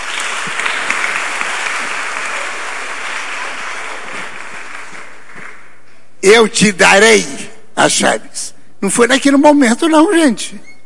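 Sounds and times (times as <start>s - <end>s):
crowd applause: 0.0s - 5.8s
speech: 6.2s - 10.7s.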